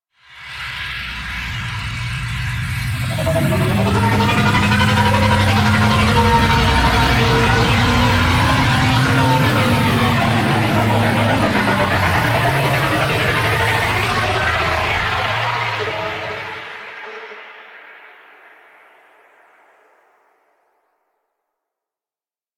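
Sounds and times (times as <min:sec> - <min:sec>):
flying vehicles in space: 0:00.7 - 0:18.1.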